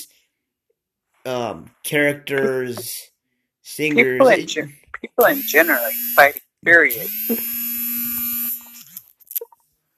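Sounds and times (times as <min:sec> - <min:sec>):
speech: 0:01.2 - 0:03.1, 0:03.7 - 0:07.6
mobile phone vibrating: 0:05.2 - 0:08.9.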